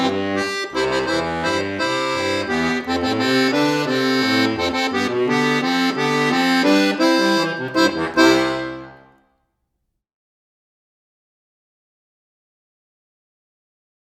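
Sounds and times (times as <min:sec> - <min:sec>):
instrumental music: 0:00.0 - 0:09.3.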